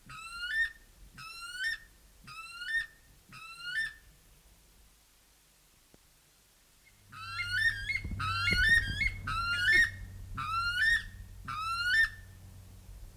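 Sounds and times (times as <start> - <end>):
buff weka calling with sliding whistled notes: 7.2 - 12.4.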